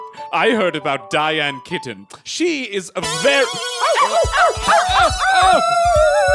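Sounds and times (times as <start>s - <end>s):
speech: 0.3s - 6.3s
dogs barking: 3.8s - 5.3s.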